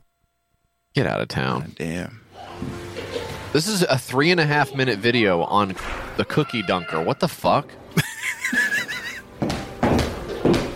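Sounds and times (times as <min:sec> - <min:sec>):
speech: 0:01.0 - 0:02.8, 0:03.5 - 0:07.8
laughter: 0:02.8 - 0:03.8, 0:07.9 - 0:09.3
high heels walking: 0:09.3 - 0:10.7.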